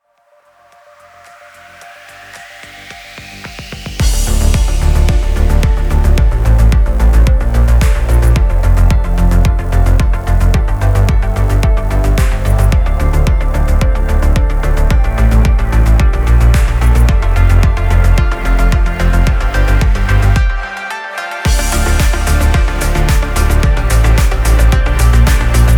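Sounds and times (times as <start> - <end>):
trance dance music: 0.7 - 25.7.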